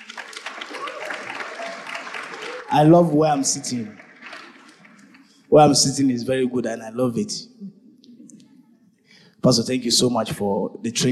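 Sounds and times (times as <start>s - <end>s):
audience applause: 0.0s - 5.4s
speech: 2.7s - 4.0s, 5.5s - 7.8s, 9.4s - 11.1s.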